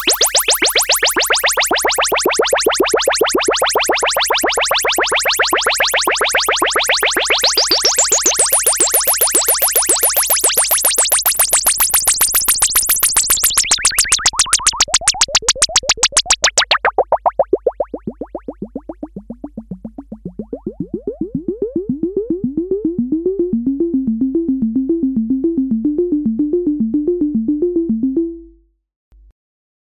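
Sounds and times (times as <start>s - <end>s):
Kawai S-100F synthesizer with LFO envelope modulation: 0.0s - 28.5s.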